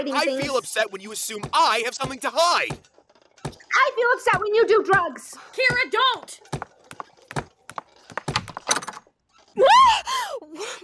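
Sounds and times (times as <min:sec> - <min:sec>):
speech: 0:00.0 - 0:03.0, 0:03.8 - 0:06.6, 0:09.6 - 0:10.8
door being opened, knocking and rattling: 0:08.1 - 0:09.0.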